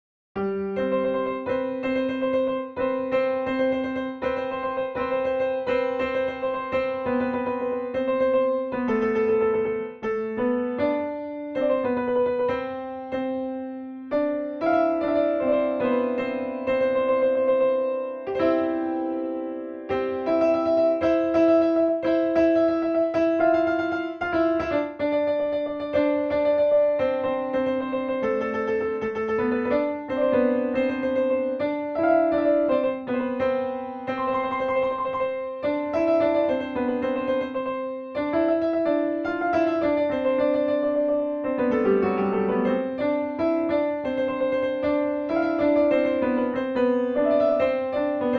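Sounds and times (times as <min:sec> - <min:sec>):
piano: 0:00.4 - 0:48.3.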